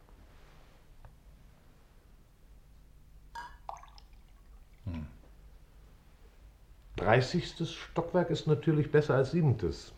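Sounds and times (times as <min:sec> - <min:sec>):
quiet hiss: 0:00.0 - 0:09.9
ringing glassy clink: 0:03.4 - 0:04.0
water poured into a glass: 0:03.4 - 0:05.0
speech: 0:07.0 - 0:09.9.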